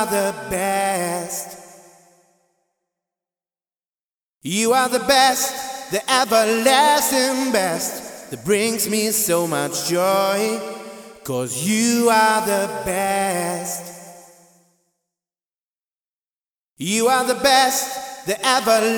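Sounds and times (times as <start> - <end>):
wet male vocal variations: 0.0 - 1.8, 4.5 - 14.3, 16.8 - 18.9.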